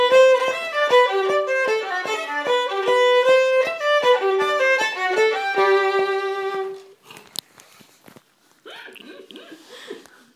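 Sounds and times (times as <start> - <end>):
polka in G: 0.0 - 6.8.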